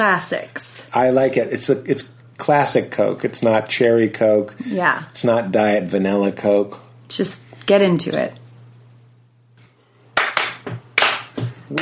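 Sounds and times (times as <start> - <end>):
speech: 0.0 - 8.4
loud hand clapping: 10.2 - 11.8.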